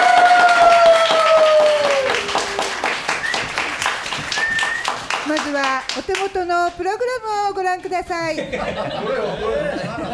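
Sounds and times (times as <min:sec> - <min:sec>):
hands clapping: 0:00.0 - 0:06.8
speech: 0:06.0 - 0:10.1
laughter: 0:08.3 - 0:10.1.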